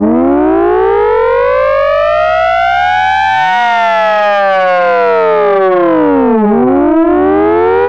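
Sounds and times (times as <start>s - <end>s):
civil defense alert siren: 0.0s - 7.8s.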